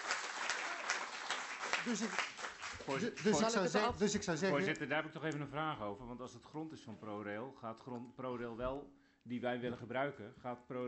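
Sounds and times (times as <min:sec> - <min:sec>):
applause: 0:00.0 - 0:03.8
speech: 0:01.8 - 0:10.8.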